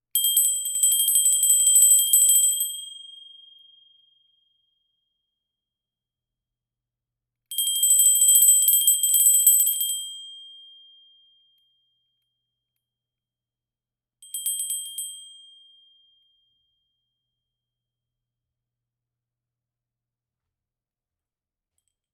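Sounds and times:
bell: 0.2s - 4.7s, 7.5s - 12.4s, 14.2s - 17.4s.

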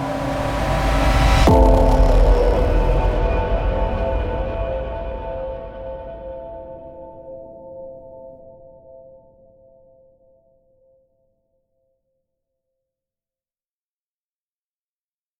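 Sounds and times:
trailer sound effects: 0.0s - 7.3s
cinematic piano trailer score: 0.0s - 10.0s.

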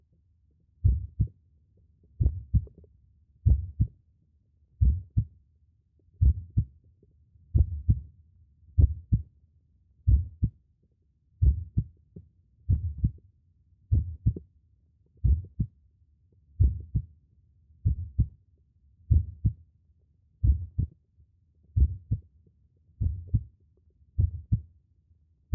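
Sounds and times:
heartbeat: 0.8s - 1.3s, 2.2s - 2.8s, 3.4s - 3.9s, 4.8s - 5.3s, 6.2s - 6.7s, 7.5s - 8.0s, 8.8s - 9.2s, 10.1s - 10.6s, 11.4s - 12.0s, 12.7s - 13.2s, 13.9s - 14.4s, 15.2s - 15.7s, 16.6s - 17.1s, 17.8s - 18.3s, 19.1s - 19.6s, 20.4s - 21.0s, 21.8s - 22.2s, 23.0s - 23.5s, 24.2s - 24.7s.

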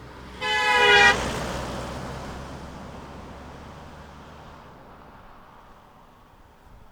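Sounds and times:
horn with Doppler effect passing on a country lane: 0.3s - 1.5s.

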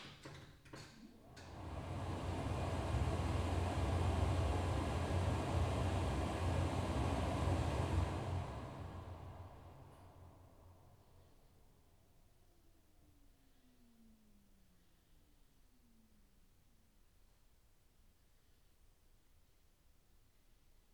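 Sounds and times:
charging cable plugging into an electric car: 1.3s - 10.1s.

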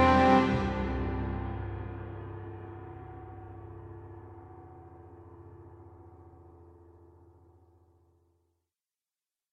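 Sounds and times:
orchestral outro theme: 0.0s - 3.6s.

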